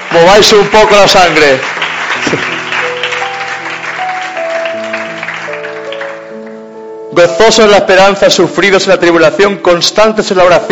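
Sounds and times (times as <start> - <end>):
audience applause: 0.0 - 6.6
speech: 0.2 - 2.6, 7.2 - 10.7.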